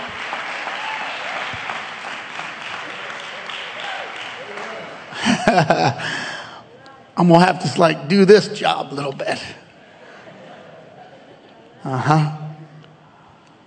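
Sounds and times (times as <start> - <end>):
audience clapping hands: 0.0 - 5.8
laughter: 4.4 - 6.5, 8.7 - 12.7
speech: 5.5 - 6.3, 7.2 - 9.6, 11.8 - 12.4.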